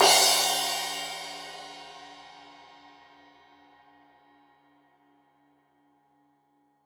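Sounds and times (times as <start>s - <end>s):
15 inch crash cymbal edge hit: 0.0s - 2.9s.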